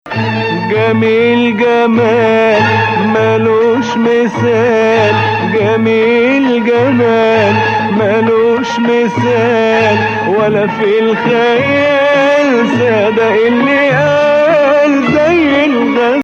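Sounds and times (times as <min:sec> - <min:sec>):
music in hijaz kar mode: 0:00.0 - 0:16.2.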